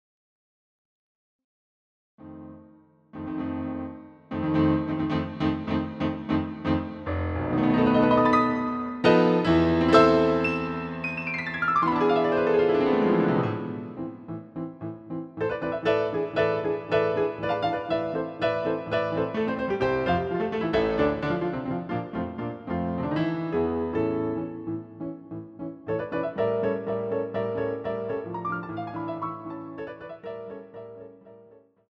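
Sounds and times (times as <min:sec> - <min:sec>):
piano concerto: 0:02.3 - 0:31.7.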